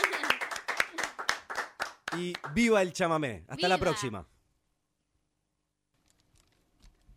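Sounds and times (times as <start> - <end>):
crowd applauding: 0.0 - 2.9
speech: 2.1 - 4.3.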